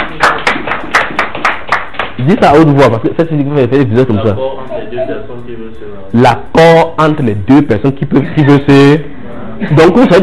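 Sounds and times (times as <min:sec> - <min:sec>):
audience applauding: 0:00.0 - 0:02.4
speech: 0:02.2 - 0:10.2.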